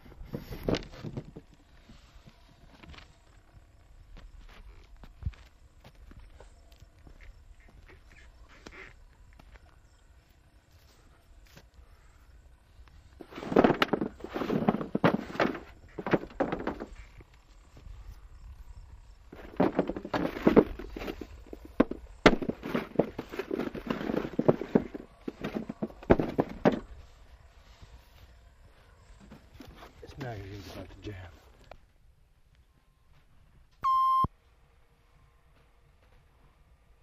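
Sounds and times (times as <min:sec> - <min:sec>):
potatoes being spread out by hand: 0:13.2 - 0:17.2, 0:19.3 - 0:27.0.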